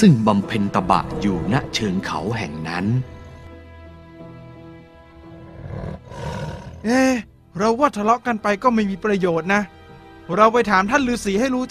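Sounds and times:
speech: 0.0 - 3.2, 6.8 - 11.7
tiger roaring: 5.4 - 7.0.

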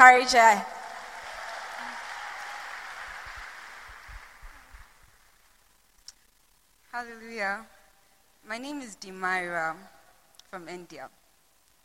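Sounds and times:
speech: 0.0 - 0.8, 6.9 - 7.7, 8.5 - 11.2
church congregation clapping to welcome a woman giving testimony: 0.4 - 5.5.

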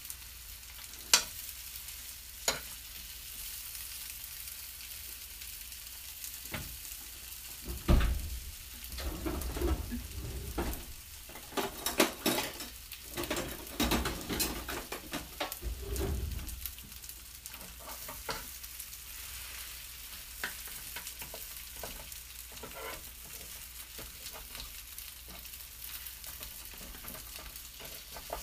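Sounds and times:
okonomiyaki sizzling on a hot griddle: 0.0 - 28.4
spatula scraping on a griddle: 8.8 - 16.8, 20.4 - 28.4.

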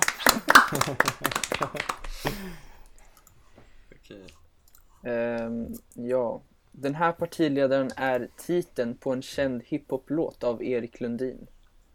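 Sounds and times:
applause: 0.0 - 2.6
laughter: 0.0 - 2.8
speech: 0.8 - 2.6, 5.0 - 11.5.

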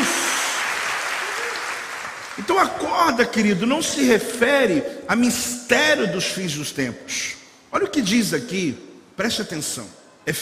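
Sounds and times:
audience applauding: 0.0 - 2.9
speech: 2.4 - 10.4.

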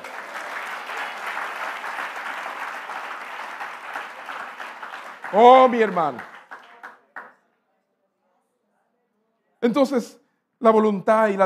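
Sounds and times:
audience applause: 0.0 - 7.3
speech: 5.3 - 6.3, 9.6 - 11.4.

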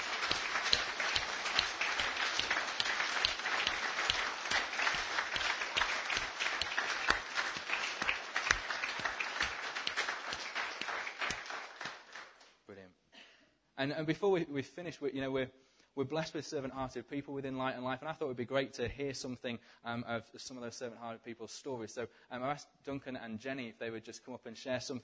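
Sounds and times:
audience applauding and clapping: 0.0 - 12.4
speech: 13.8 - 25.0.

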